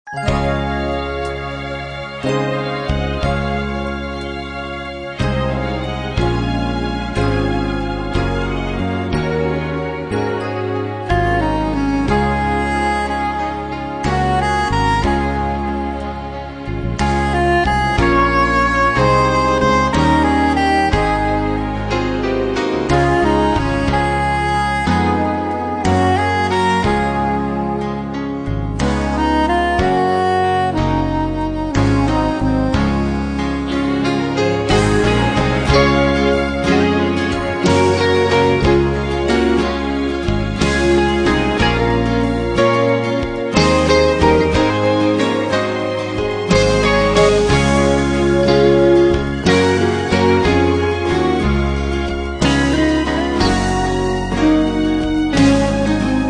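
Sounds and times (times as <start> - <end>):
instrumental hymns: 0.1 - 56.2.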